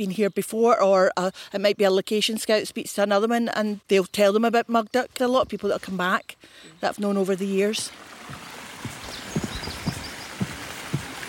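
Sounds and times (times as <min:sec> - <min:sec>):
speech: 0:00.0 - 0:08.4
footsteps walking across a wooden boardwalk in Mugdock park: 0:07.7 - 0:11.2.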